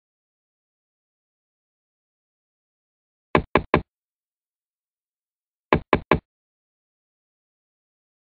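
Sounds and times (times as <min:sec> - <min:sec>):
knocking on doors: 0:03.4 - 0:03.8, 0:05.8 - 0:06.2.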